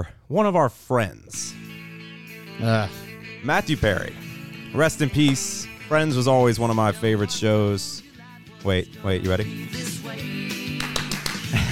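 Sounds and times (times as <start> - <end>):
speech: 0.0 - 1.6, 2.6 - 8.0, 8.6 - 10.6
hand clap: 5.2 - 5.7, 10.5 - 11.7.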